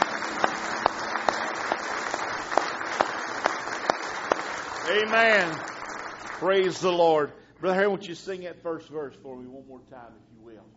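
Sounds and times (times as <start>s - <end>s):
audience hand clapping: 0.0s - 7.3s
speech: 4.9s - 5.7s, 6.4s - 10.7s.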